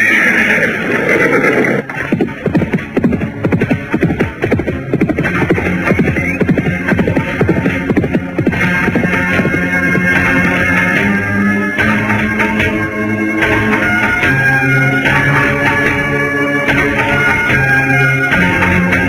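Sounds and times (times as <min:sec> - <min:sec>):
horse whinnying: 0:00.0 - 0:02.5
horse hooves galloping: 0:00.1 - 0:19.0.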